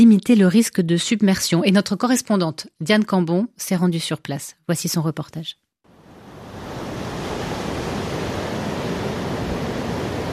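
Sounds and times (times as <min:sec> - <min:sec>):
speech: 0:00.0 - 0:05.6
waves breaking on a beach: 0:05.9 - 0:10.3.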